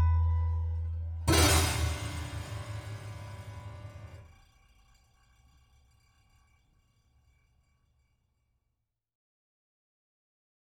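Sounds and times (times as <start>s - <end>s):
hum: 0.0s - 4.3s.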